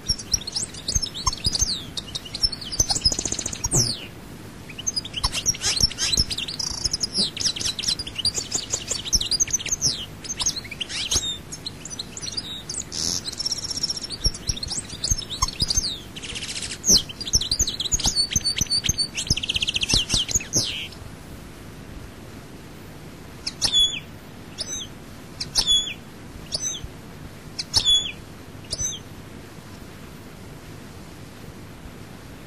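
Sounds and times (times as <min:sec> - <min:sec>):
European goldfinch twittering: 0:00.0 - 0:21.0, 0:23.4 - 0:26.9, 0:27.6 - 0:29.1.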